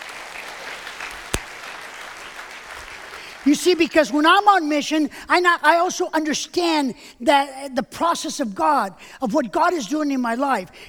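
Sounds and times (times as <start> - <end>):
audience applause: 0.0 - 3.4
speech: 3.4 - 10.8.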